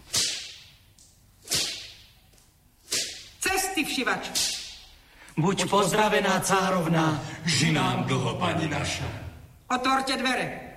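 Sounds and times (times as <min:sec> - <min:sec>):
whip whistling through the air and cracking: 0:00.0 - 0:03.5, 0:04.2 - 0:05.0
speech: 0:03.8 - 0:04.6, 0:05.4 - 0:10.6.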